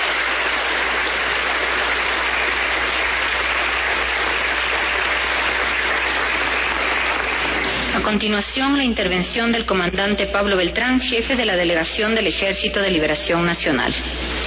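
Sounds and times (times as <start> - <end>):
applause at a signing ceremony in the Cancillería de Ecuador: 0.0 - 8.3
speech: 8.1 - 14.3.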